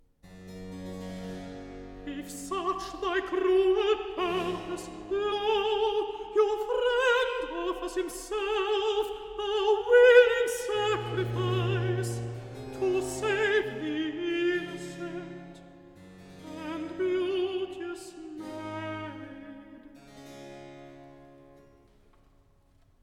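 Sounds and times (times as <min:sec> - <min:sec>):
person singing recitative: 0:02.0 - 0:15.6, 0:16.4 - 0:20.0.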